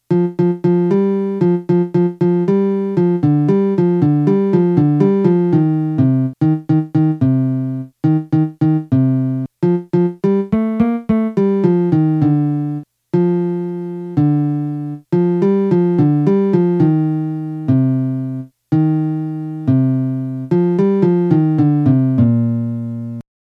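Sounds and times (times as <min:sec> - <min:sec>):
melody: 0:00.1 - 0:23.2.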